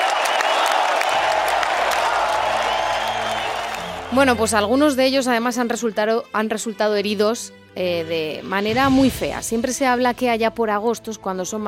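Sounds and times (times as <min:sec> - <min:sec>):
ovation applause: 0:00.0 - 0:04.6
speech: 0:04.1 - 0:11.6.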